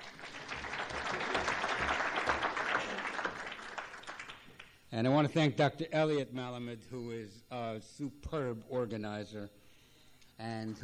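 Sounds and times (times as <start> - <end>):
audience applause: 0.0 - 4.7
speech: 5.0 - 9.6, 10.4 - 10.8.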